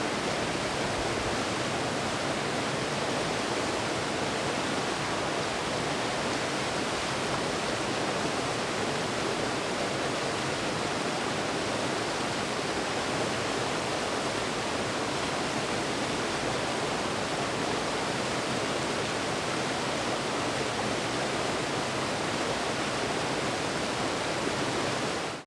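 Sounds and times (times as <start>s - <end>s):
small waterfall on a trail in the Cerrado: 0.0s - 25.4s.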